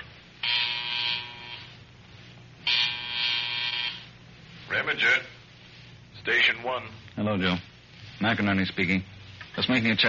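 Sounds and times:
field telephone buzzer ringing: 0.4 - 1.7, 2.6 - 4.1
speech: 4.8 - 5.4, 6.2 - 10.0.

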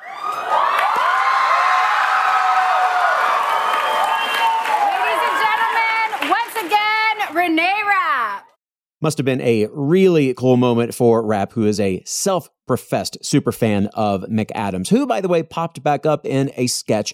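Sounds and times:
shrieks and whoops: 0.0 - 6.2
live studio audience cheering: 0.0 - 7.3
speech: 9.0 - 17.1.

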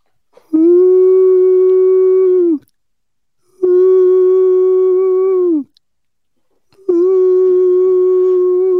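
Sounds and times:
person imitating owl hoots: 0.5 - 2.7, 3.5 - 5.8, 6.8 - 8.7.

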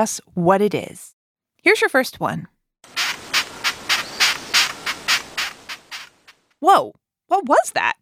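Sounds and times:
speech: 0.0 - 2.5, 6.6 - 8.0
long-horned beetle stridulating: 2.9 - 6.4.

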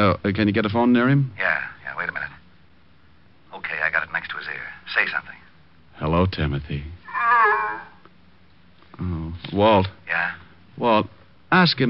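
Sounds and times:
speech: 0.0 - 2.3, 4.9 - 5.3, 6.0 - 7.0, 9.0 - 11.8
seal honking: 7.1 - 8.0.

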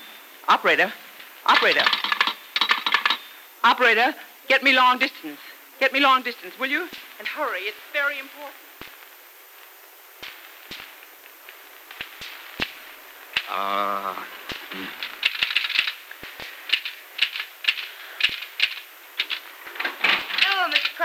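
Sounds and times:
speech: 0.4 - 2.1, 3.6 - 8.7, 13.5 - 15.0
typewriter clacking as a letter is typed: 15.0 - 16.0, 16.7 - 19.4, 20.0 - 21.0.

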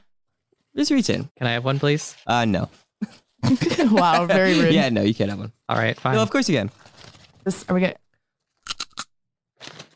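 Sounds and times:
speech: 0.8 - 8.0
laughter: 3.4 - 4.9
person crunching a crisp snack: 8.5 - 9.9.

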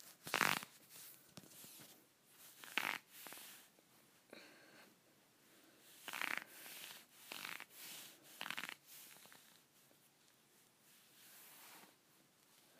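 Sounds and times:
scratchy leggings rubbing and rasping: 0.0 - 3.7, 5.9 - 9.6.

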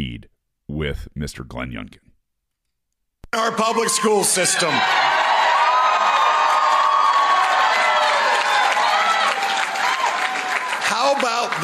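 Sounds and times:
speech: 0.8 - 2.0, 3.3 - 5.2, 11.0 - 11.6
crowd of Republicans cheering and applauding: 3.4 - 11.6.

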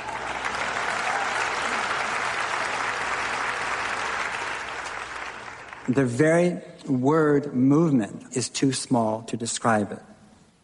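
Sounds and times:
audience applause: 0.0 - 6.0
speech: 5.9 - 10.1.

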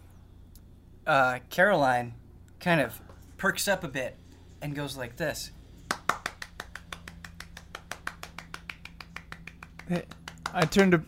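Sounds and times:
speech: 1.1 - 5.6, 9.9 - 11.0
single person's hands clapping: 5.9 - 11.0.

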